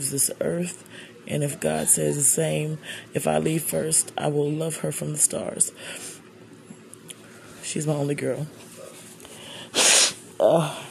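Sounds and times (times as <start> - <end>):
speech: 0.0 - 6.2, 7.7 - 8.7, 10.4 - 10.8
sharp hissy sniffle: 9.3 - 10.2.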